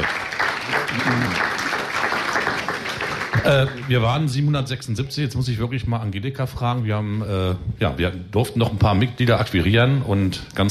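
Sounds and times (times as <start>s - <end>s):
audience applause: 0.0s - 4.3s
speech: 3.5s - 10.6s.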